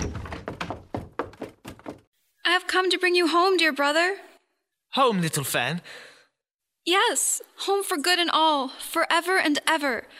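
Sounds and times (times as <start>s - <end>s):
door bursting open: 0.0s - 1.7s
speech: 2.5s - 4.3s, 4.9s - 6.1s, 6.8s - 10.1s.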